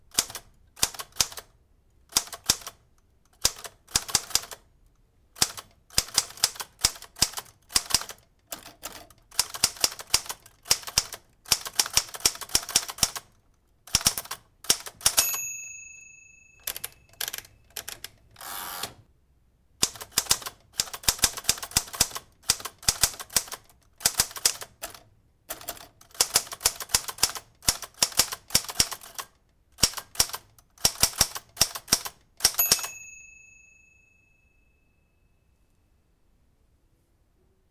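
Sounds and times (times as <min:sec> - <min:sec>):
typewriter typing: 0:00.1 - 0:01.5, 0:02.1 - 0:04.7, 0:05.4 - 0:15.3, 0:16.6 - 0:19.0, 0:19.8 - 0:33.0.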